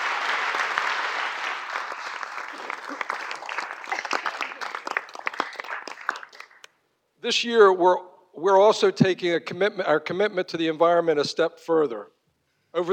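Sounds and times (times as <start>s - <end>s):
audience applause: 0.0s - 6.7s
speech: 7.2s - 12.9s.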